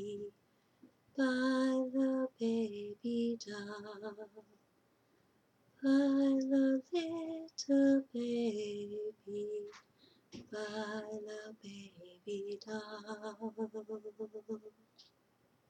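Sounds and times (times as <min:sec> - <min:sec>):
lullaby: 0:00.0 - 0:00.4, 0:01.2 - 0:04.6, 0:05.8 - 0:09.8, 0:10.4 - 0:14.8.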